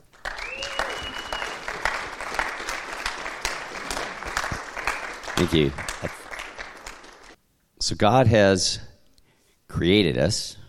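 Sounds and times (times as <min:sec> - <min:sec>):
audience applause: 0:00.0 - 0:07.4
speech: 0:05.4 - 0:06.2, 0:07.8 - 0:08.9, 0:09.7 - 0:10.6.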